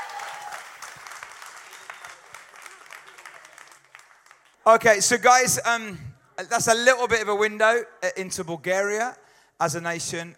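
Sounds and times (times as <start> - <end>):
audience applause for a Bulgarian dancing performance: 0.0 - 4.6
speech: 4.7 - 10.3.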